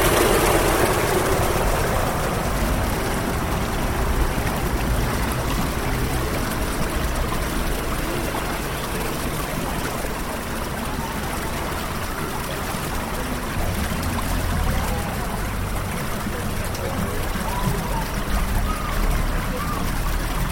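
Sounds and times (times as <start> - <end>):
low rumble: 0.0 - 8.2
faint voices: 0.0 - 20.5
rushing trickling water in Beer, East Devon: 0.0 - 20.5.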